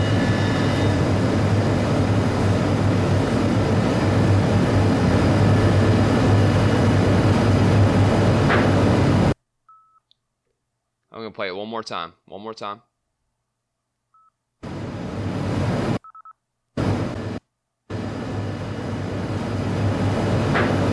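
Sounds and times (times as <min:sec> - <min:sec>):
air conditioner running: 0:00.0 - 0:09.4, 0:14.6 - 0:16.0, 0:16.8 - 0:20.9
speech: 0:11.2 - 0:12.9.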